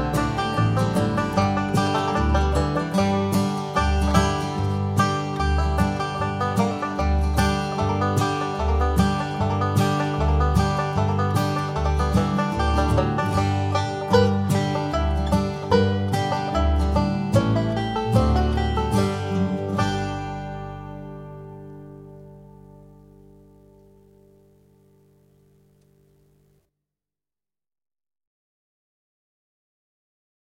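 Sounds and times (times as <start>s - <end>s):
banjo music at 150 bpm: 0.0s - 24.7s.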